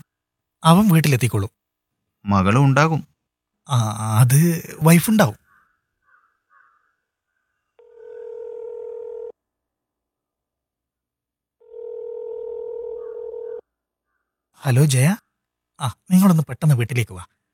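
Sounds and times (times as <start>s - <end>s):
speech: 0.6s - 1.6s, 2.2s - 3.1s, 3.7s - 5.4s, 14.6s - 15.2s, 15.8s - 17.4s
telephone dialing tones: 7.8s - 9.4s, 11.6s - 13.6s.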